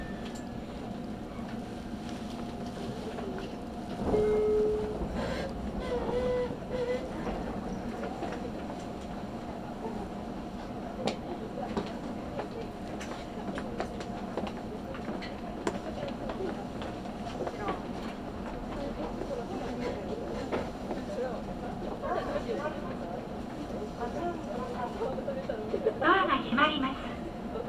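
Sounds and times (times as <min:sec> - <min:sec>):
train ride rumble on the Karatsu and Nagasaki lines: 0:00.0 - 0:27.6
brief tone: 0:04.1 - 0:05.1.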